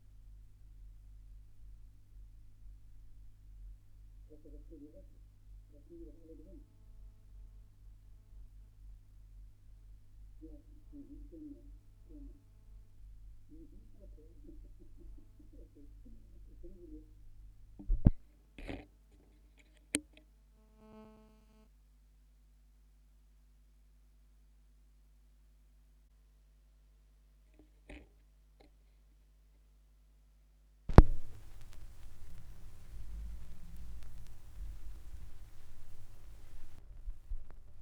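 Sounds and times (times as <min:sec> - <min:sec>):
vinyl record noise: 0:00.0 - 0:21.7, 0:30.9 - 0:37.8.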